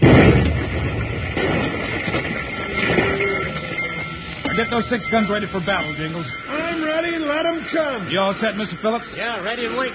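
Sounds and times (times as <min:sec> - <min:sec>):
explosion of a lit fused charge: 0:00.0 - 0:03.4
speech: 0:04.7 - 0:09.9.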